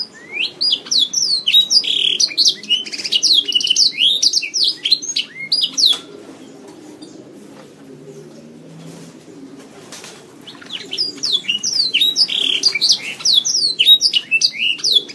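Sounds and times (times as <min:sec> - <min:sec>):
Oriental magpie-robin singing high chirps and whistles: 0:00.0 - 0:06.0, 0:10.5 - 0:15.1.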